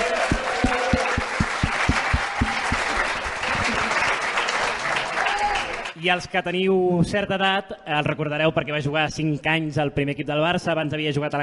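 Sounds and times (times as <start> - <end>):
audience applause: 0.0 - 6.0
speech: 6.0 - 11.4.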